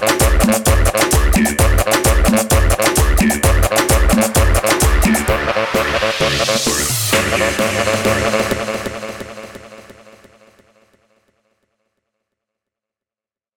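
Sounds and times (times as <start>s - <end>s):
130 bpm music track: 0.0s - 10.0s.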